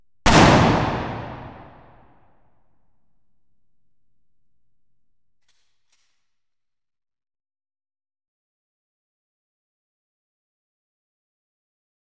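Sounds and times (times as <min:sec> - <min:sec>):
explosions: 0:00.3 - 0:01.9
cannon fire: 0:00.3 - 0:02.0
gunfire: 0:00.3 - 0:02.0
pistol shots: 0:00.3 - 0:02.0.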